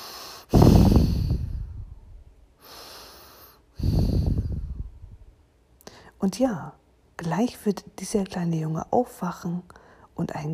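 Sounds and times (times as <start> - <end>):
child breathing calmly in sleep: 0.0 - 1.9, 2.6 - 5.0
speech: 6.2 - 10.5.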